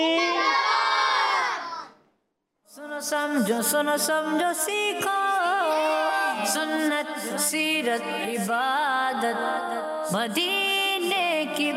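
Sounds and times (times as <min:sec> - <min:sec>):
children shouting the Dawat-e-Islami slogan in chorus: 0:00.0 - 0:02.0
speech: 0:03.0 - 0:11.7.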